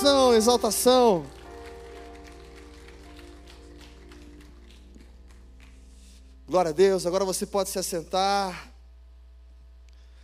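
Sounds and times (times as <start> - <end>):
speech: 0.0 - 1.4, 6.5 - 8.7
audience applauding: 0.0 - 6.3.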